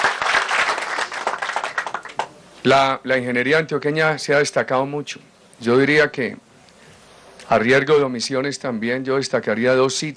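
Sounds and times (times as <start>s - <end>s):
applause honouring public works project workers and engineers: 0.0s - 2.4s
speech: 2.6s - 6.5s, 7.5s - 10.1s.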